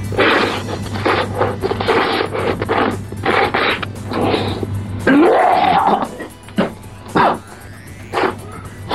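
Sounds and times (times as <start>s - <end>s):
slurping sound: 0.0s - 7.5s.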